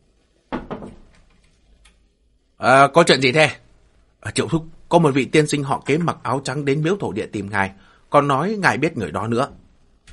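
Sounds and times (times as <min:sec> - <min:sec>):
careful knocking on a door: 0:00.5 - 0:01.1
speech: 0:02.6 - 0:03.6, 0:04.2 - 0:09.6.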